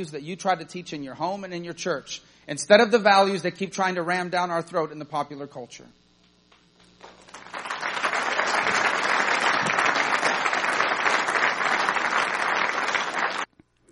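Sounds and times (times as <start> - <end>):
speech: 0.0 - 6.0
polite crowd applause: 7.0 - 13.5.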